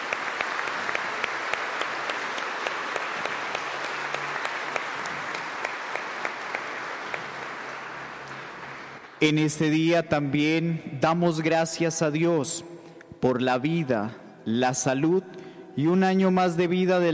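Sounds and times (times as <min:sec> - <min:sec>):
crowd applause: 0:00.0 - 0:09.2
speech: 0:09.2 - 0:17.1.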